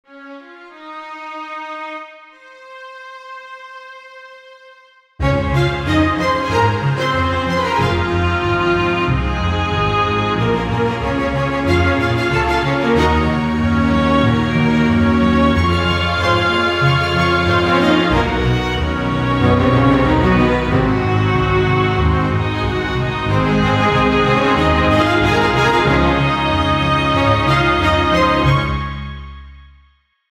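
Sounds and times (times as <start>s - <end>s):
string quartet: 0.1s - 29.6s.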